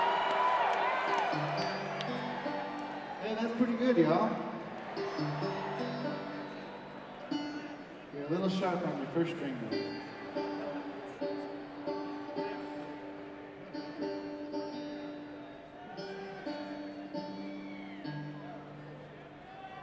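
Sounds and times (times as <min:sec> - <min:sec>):
bluegrass banjo tuning: 0:00.0 - 0:19.2.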